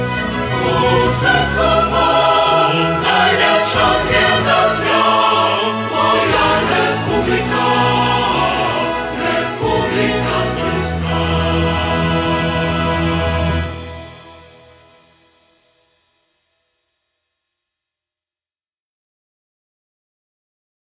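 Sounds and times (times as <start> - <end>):
choir singing: 0.0 - 15.0
orchestra playing: 0.0 - 15.3.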